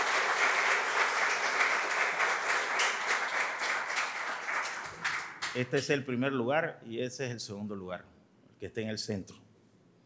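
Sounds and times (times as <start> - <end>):
crowd applause: 0.0 - 5.8
speech: 5.5 - 9.4.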